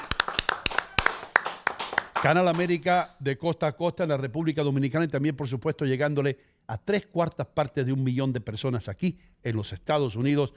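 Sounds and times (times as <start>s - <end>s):
audience applause: 0.0s - 3.1s
speech: 2.2s - 10.5s.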